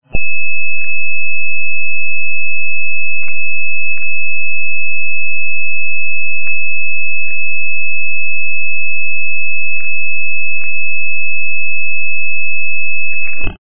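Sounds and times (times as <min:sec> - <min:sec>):
a lot of noise: 0:00.0 - 0:13.5.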